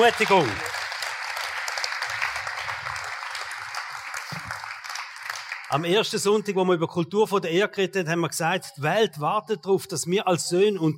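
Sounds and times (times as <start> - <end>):
speech: 0.0 - 0.7, 5.7 - 10.9
audience applause: 0.0 - 5.9.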